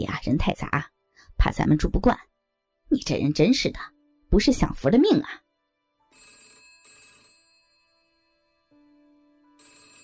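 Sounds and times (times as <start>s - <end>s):
speech: 0.0s - 2.3s, 2.9s - 5.4s
telephone bell ringing: 6.0s - 10.0s.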